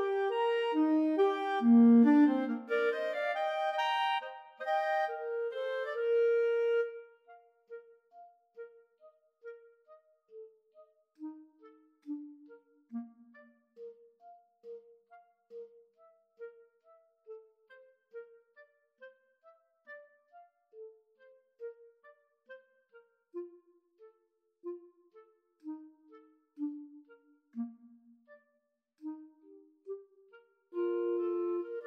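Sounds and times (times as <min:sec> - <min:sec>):
clarinet trio: 0:00.0 - 0:08.8, 0:11.2 - 0:14.8, 0:24.6 - 0:28.4, 0:29.0 - 0:31.8.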